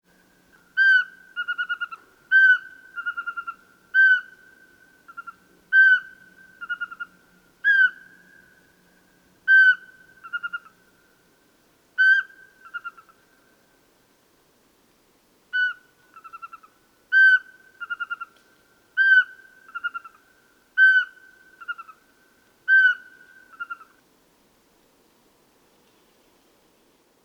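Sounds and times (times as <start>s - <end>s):
Eurasian pygmy owl calling: 0.6s - 8.6s, 9.5s - 10.8s, 12.0s - 13.2s, 15.5s - 18.4s, 19.0s - 20.2s, 20.8s - 22.0s, 22.7s - 24.0s.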